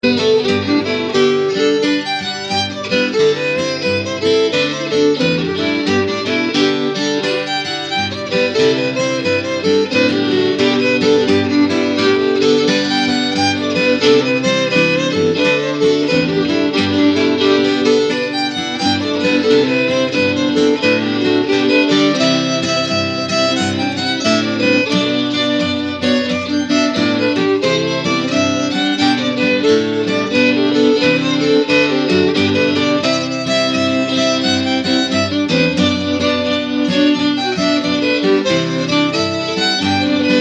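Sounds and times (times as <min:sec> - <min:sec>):
cowboy jig tune: 0:00.0 - 0:40.4.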